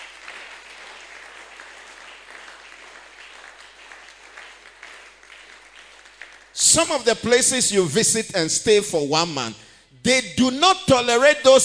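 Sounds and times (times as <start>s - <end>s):
audience clapping: 0.0s - 7.6s
speech: 6.6s - 11.6s.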